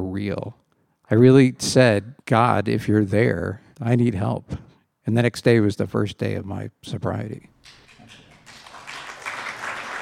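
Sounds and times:
speech: 0.2 - 8.2
audience applause: 7.7 - 10.0.

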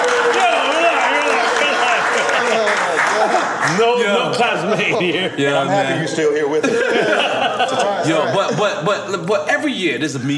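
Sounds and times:
whoops and shouting voices: 0.0 - 2.0
live audience applause: 0.0 - 4.2
laughter: 0.4 - 9.1
speech: 3.8 - 10.3.

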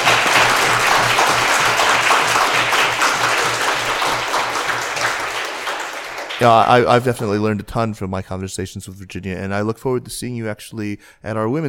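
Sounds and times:
warm round of applause: 0.0 - 7.1
speech: 6.4 - 11.6.

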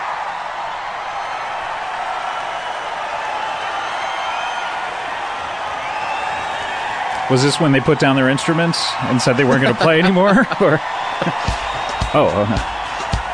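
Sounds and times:
live concert audience cheering: 0.0 - 13.3
high whistles from concert audience: 2.3 - 7.0, 11.1 - 13.3
speech: 7.3 - 12.8
laughter: 9.0 - 12.6.

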